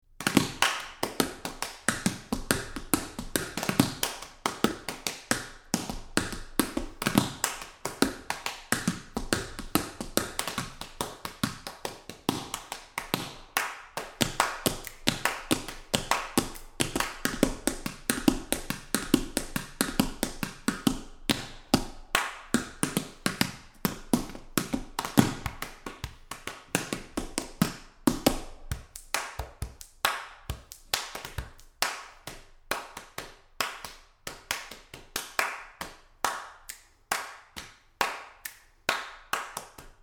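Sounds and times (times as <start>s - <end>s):
body clapping: 0.2s - 40.0s.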